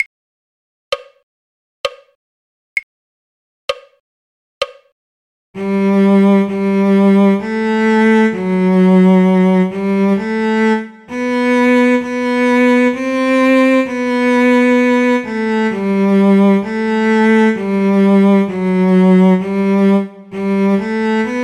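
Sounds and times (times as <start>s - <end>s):
cello: 5.6s - 21.4s.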